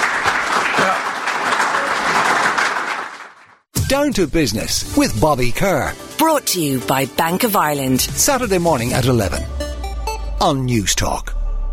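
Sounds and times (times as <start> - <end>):
audience applause: 0.0 - 3.6
speech: 3.9 - 9.6, 10.4 - 11.4.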